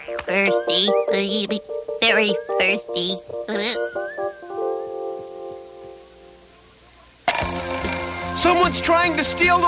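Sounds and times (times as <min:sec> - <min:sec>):
speech: 0:00.3 - 0:04.0, 0:08.4 - 0:09.6
door alarm electronic chimes: 0:00.3 - 0:04.4, 0:07.3 - 0:09.6.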